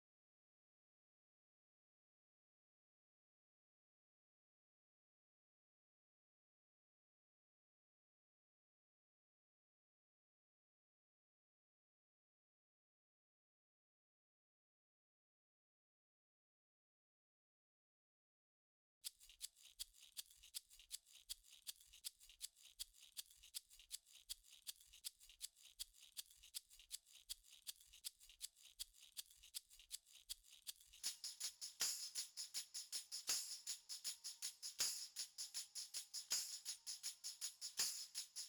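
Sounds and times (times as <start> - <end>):
percussion: 19.0 - 38.4.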